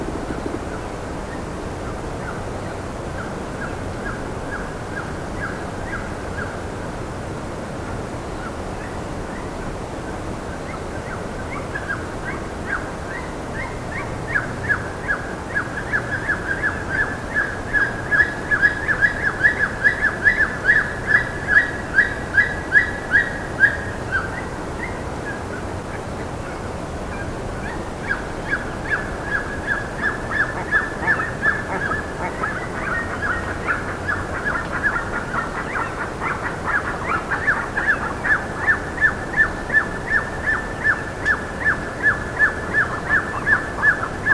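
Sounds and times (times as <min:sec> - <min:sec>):
background hiss: 0:00.0 - 0:44.3
bird chirping: 0:10.6 - 0:44.3.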